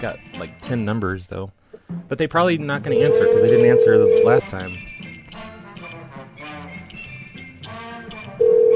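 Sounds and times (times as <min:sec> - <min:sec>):
speech: 0:00.0 - 0:04.9
telephone tone on a call being placed: 0:02.9 - 0:04.4, 0:08.4 - 0:08.7.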